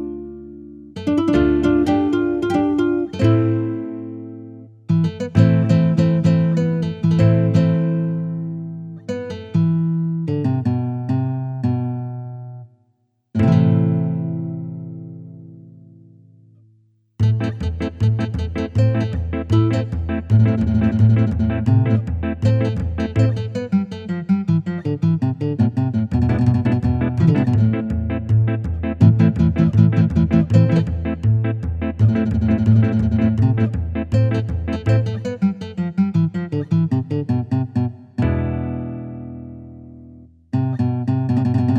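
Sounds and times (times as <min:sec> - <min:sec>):
nylon guitar: 0:00.0 - 0:12.7, 0:13.4 - 0:16.3, 0:17.2 - 0:41.7.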